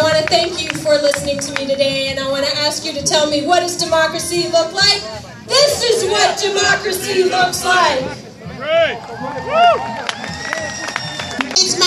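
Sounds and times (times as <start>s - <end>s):
scattered clapping: 0.0s - 2.0s, 9.8s - 11.8s
crowd babble: 0.0s - 11.8s
speech: 0.4s - 10.2s
crowd cheering and shouting at a rally: 5.5s - 11.8s.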